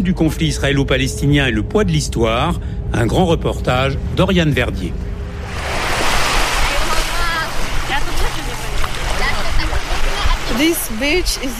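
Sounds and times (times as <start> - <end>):
speech: 0.0 - 5.1, 10.6 - 11.5
sea waves rolling in at Marbella beach in Barcelona: 3.6 - 11.5.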